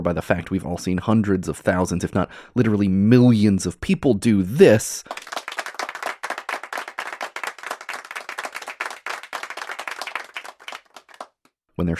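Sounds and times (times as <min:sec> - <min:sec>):
speech: 0:00.0 - 0:05.2, 0:11.8 - 0:11.9
hands clapping: 0:05.0 - 0:11.6.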